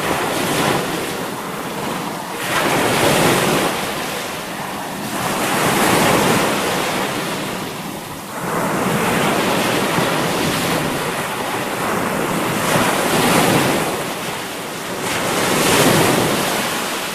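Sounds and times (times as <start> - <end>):
sea waves: 0.0 - 17.1.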